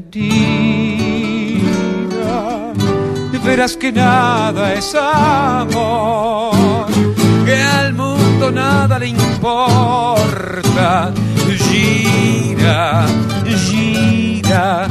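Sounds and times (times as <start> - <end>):
tango ringtone: 0.2 - 14.8.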